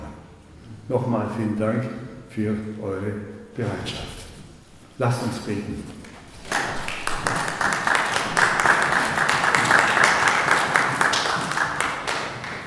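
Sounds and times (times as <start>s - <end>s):
speech: 0.9s - 4.2s, 5.0s - 6.0s
audience applause: 6.3s - 12.6s.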